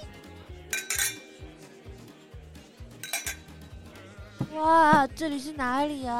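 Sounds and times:
glasses and dishes clinking in a bar: 0:00.7 - 0:01.4, 0:03.0 - 0:03.7
speech: 0:04.5 - 0:06.1.

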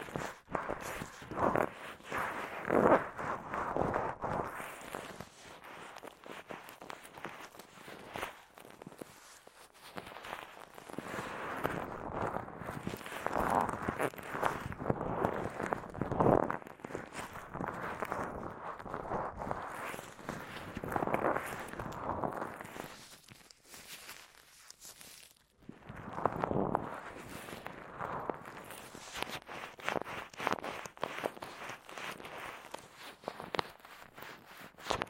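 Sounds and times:
gloves rubbing and pressing against an ear in a massage: 0:00.0 - 0:35.0.

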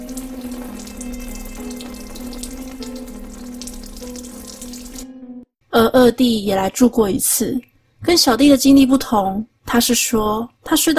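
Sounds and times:
bathroom tap water running: 0:00.0 - 0:05.2
speech: 0:06.0 - 0:10.9.

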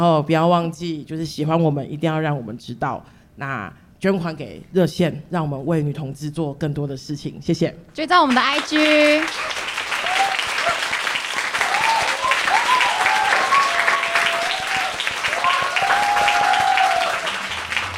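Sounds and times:
speech: 0:00.0 - 0:09.5
audience clapping: 0:08.2 - 0:17.9
audience screaming and whooping: 0:09.4 - 0:17.9.

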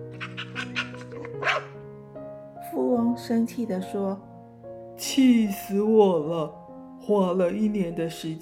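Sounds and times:
soft music: 0:00.0 - 0:08.4
dog barking: 0:00.1 - 0:01.8
speech: 0:03.2 - 0:04.3, 0:05.0 - 0:08.4.

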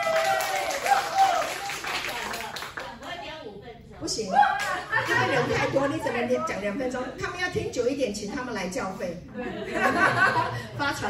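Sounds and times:
audience applause: 0:00.0 - 0:03.0
laughter: 0:04.4 - 0:06.2, 0:09.3 - 0:11.0
speech: 0:05.3 - 0:11.0.

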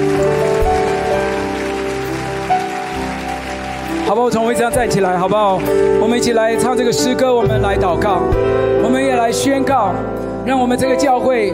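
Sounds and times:
people clapping: 0:00.0 - 0:06.7
speech: 0:04.1 - 0:11.5.

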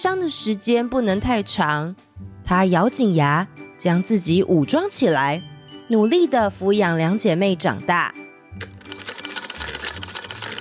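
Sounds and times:
speech: 0:00.0 - 0:08.7
sewing machine stitching: 0:08.6 - 0:10.5.

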